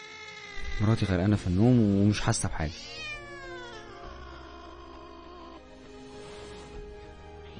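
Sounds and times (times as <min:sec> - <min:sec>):
cat making a strange, loud yowl: 0:00.0 - 0:01.5, 0:02.1 - 0:05.8
speech: 0:00.8 - 0:03.1.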